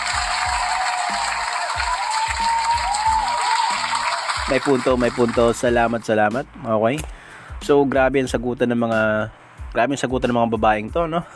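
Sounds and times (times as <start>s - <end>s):
audience applause at a women's question-and-answer contest: 0.0s - 5.6s
speech: 4.5s - 11.3s.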